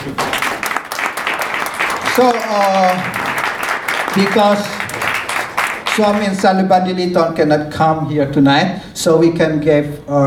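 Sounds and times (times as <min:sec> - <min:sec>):
audience applauding: 0:00.0 - 0:06.7
speech: 0:02.2 - 0:03.2, 0:04.2 - 0:04.8, 0:06.0 - 0:10.2.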